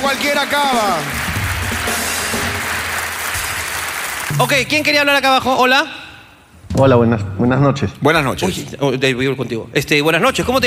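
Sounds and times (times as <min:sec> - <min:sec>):
audience applause: 0:00.0 - 0:05.0
speech: 0:00.1 - 0:01.2, 0:04.3 - 0:06.0, 0:06.7 - 0:10.6.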